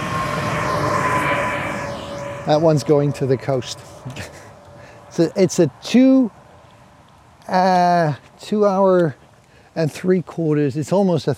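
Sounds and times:
newer-model train passing by: 0.0s - 6.6s
speech: 2.5s - 4.4s, 5.1s - 6.4s, 7.5s - 9.2s, 9.8s - 11.3s.

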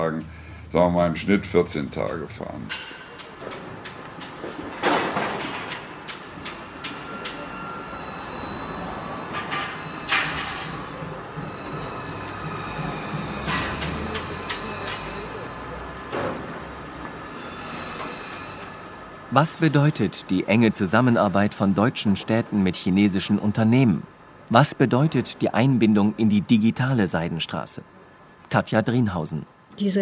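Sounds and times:
speech: 0.0s - 3.0s, 19.4s - 30.0s
freight train carrying goods from Chongqing rolling on rails: 1.2s - 26.2s
freight train wheels squealing: 5.8s - 19.3s.

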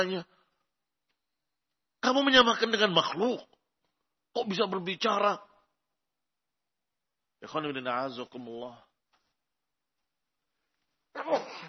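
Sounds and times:
speech: 0.0s - 0.4s, 2.0s - 3.6s, 4.4s - 5.5s, 7.4s - 8.9s, 11.2s - 11.6s
sneeze: 11.1s - 11.6s.

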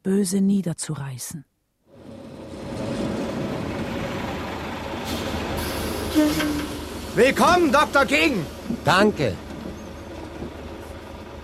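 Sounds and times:
speech: 0.0s - 1.5s, 6.2s - 9.4s
bus engine running with a low rumbling drone: 1.9s - 11.4s
faint hiss: 5.1s - 9.4s.

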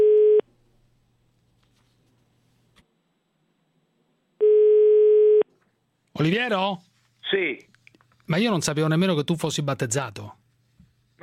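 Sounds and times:
telephone line tone while placing a call: 0.0s - 0.4s, 4.4s - 5.4s
speech: 6.2s - 7.7s, 8.3s - 10.4s.

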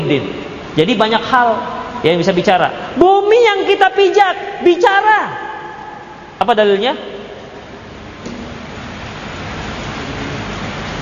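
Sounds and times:
speech: 0.1s - 5.4s, 6.4s - 7.1s
rain falling: 7.7s - 11.0s.

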